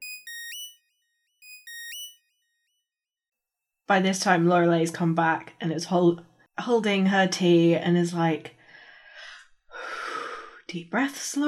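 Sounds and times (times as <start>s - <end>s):
ship console crackling hailing signal: 1.4s - 2.2s
speech: 3.9s - 8.6s, 10.7s - 11.4s.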